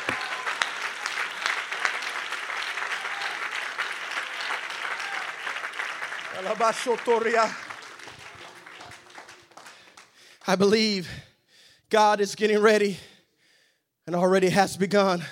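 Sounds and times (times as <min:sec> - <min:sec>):
audience clapping hands in praise: 0:00.0 - 0:10.8
speech: 0:06.4 - 0:07.6, 0:10.5 - 0:11.2, 0:11.9 - 0:13.1, 0:14.1 - 0:15.2.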